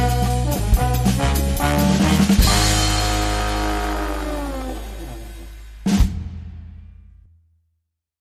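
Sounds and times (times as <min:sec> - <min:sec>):
fat trombone underscore music: 0:00.0 - 0:06.2.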